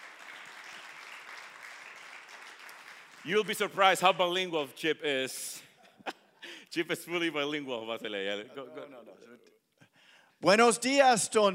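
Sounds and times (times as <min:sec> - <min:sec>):
audience applause: 0:00.0 - 0:03.9
speech: 0:03.2 - 0:05.7, 0:06.8 - 0:09.6, 0:10.4 - 0:11.5.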